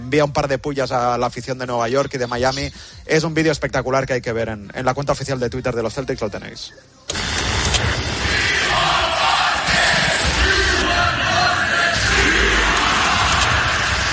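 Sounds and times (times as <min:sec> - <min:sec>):
speech: 0:00.1 - 0:07.1
crowd chanting: 0:08.0 - 0:14.1.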